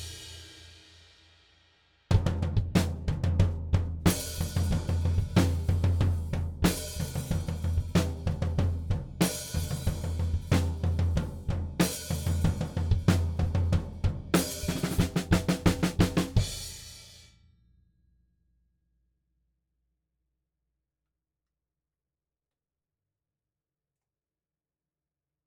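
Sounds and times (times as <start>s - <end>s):
drums: 0.0s - 17.3s.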